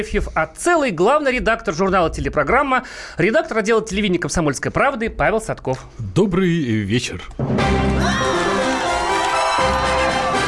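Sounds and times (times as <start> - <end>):
speech: 0.0 - 8.2
crowd applause: 7.8 - 10.4
cheering and high-pitched whoops: 8.0 - 10.4.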